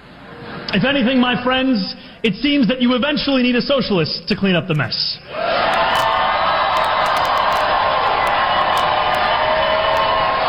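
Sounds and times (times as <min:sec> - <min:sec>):
speech: 0:00.7 - 0:05.3
audience cheering: 0:05.3 - 0:10.4.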